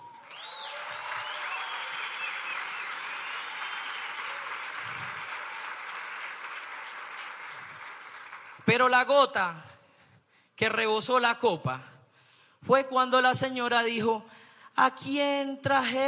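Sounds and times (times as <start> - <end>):
audience applause: 0.0 - 8.7
speech: 8.7 - 9.7, 10.6 - 11.9, 12.6 - 16.0.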